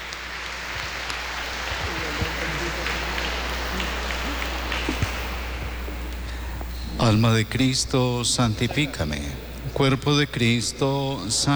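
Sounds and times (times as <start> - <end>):
audience applause: 0.0 - 9.5
laughter: 0.6 - 11.5
speech: 7.1 - 11.5.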